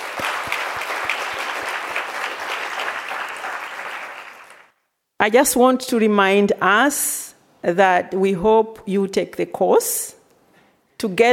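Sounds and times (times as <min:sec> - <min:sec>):
applause: 0:00.0 - 0:04.8
speech: 0:05.2 - 0:10.2, 0:11.0 - 0:11.3.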